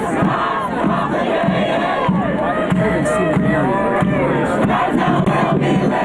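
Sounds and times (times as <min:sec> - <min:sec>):
protest crowd chanting and yelling: 0:00.0 - 0:06.0.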